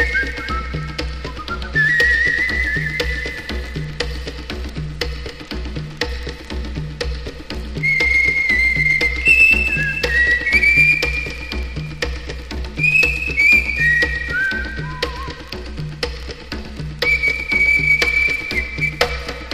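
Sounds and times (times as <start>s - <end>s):
whistle: 0.0s - 4.1s, 7.8s - 12.2s, 12.8s - 15.6s, 17.0s - 19.5s
bongos: 0.0s - 19.5s.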